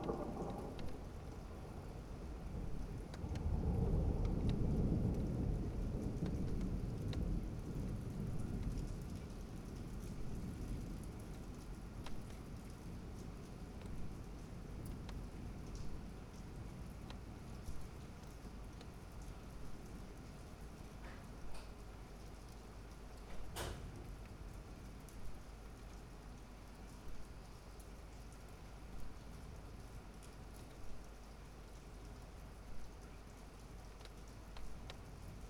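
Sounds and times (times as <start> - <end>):
thunder: 0.0 - 9.5
rain heard out of a window: 0.0 - 35.4.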